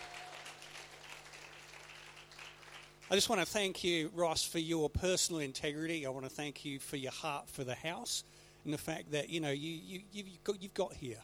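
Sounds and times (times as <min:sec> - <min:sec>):
crowd applause: 0:00.0 - 0:03.1
low electrical hum: 0:00.0 - 0:11.2
speech: 0:03.1 - 0:11.2.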